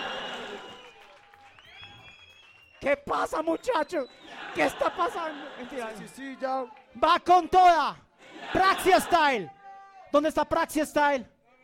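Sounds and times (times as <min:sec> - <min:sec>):
laughter: 0:00.0 - 0:01.0, 0:04.1 - 0:06.6, 0:08.2 - 0:09.5
audience applause: 0:00.0 - 0:06.9
speech: 0:02.8 - 0:11.3.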